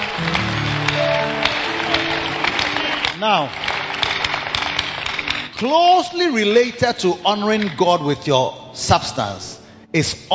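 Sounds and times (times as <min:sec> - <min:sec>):
audience clapping: 0:00.0 - 0:06.7
sustained low musical tones: 0:00.0 - 0:10.3
speech: 0:03.2 - 0:03.7, 0:05.6 - 0:10.3.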